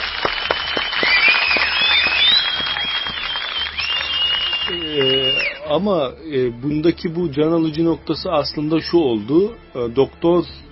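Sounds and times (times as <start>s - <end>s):
audience applause: 0.0s - 5.6s
thin high whistle-like tones: 0.5s - 5.7s
speech: 5.8s - 10.6s.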